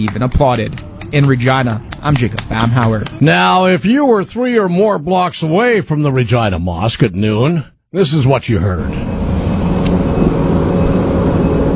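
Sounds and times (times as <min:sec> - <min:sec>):
distant construction noise: 0:00.0 - 0:03.9, 0:08.8 - 0:11.7
speech: 0:00.0 - 0:09.2.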